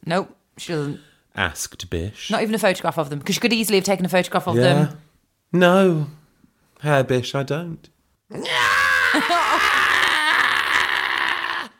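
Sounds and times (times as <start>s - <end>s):
speech: 0.1s - 6.2s, 6.8s - 9.4s
man screaming: 8.3s - 11.7s.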